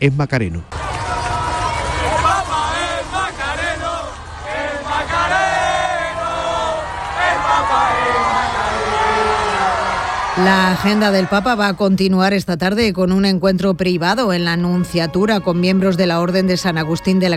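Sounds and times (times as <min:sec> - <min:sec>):
speech: 0:00.0 - 0:00.8, 0:10.4 - 0:17.3
young people shouting a chant: 0:00.7 - 0:11.8.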